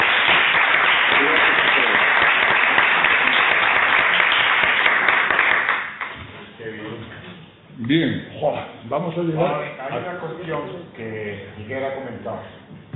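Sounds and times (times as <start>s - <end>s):
audience applause: 0.0s - 6.2s
speech: 7.9s - 12.6s.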